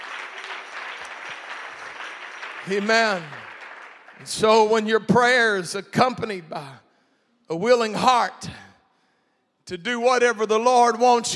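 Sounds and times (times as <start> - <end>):
church congregation clapping: 0.0 - 5.7
speech: 2.6 - 3.4, 4.2 - 6.8, 7.5 - 8.6, 9.7 - 11.3.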